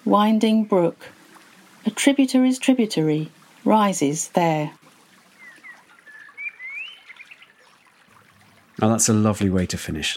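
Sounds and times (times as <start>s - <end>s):
speech: 0.1s - 1.2s, 1.8s - 4.8s, 8.8s - 10.1s
woodland birds singing: 5.2s - 8.1s.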